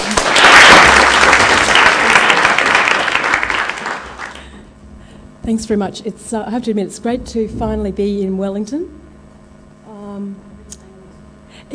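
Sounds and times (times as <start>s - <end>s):
audience applause welcoming a guest speaker: 0.0s - 4.6s
speech: 5.5s - 9.1s.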